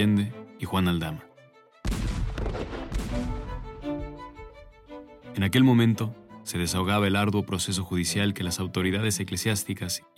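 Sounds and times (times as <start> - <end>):
speech: 0.0 - 1.3, 5.4 - 10.1
firing squad rifle volley: 1.9 - 4.2.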